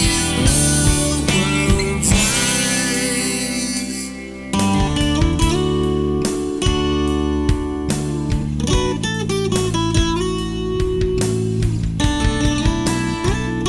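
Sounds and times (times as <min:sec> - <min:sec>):
ambient harmony karaoke music: 0:00.0 - 0:13.6.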